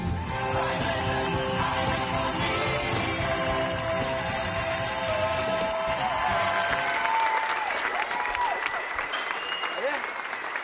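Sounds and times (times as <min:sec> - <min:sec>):
faint whistles and cheers: 0:00.2 - 0:03.0, 0:04.7 - 0:10.6
audience applause: 0:00.2 - 0:10.6.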